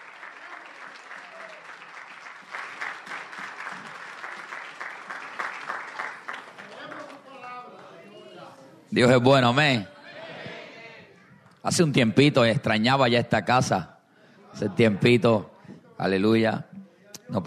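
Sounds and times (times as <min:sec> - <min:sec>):
audience applauding: 0:00.0 - 0:08.0
speech: 0:08.9 - 0:09.9, 0:11.7 - 0:13.9, 0:14.6 - 0:16.7.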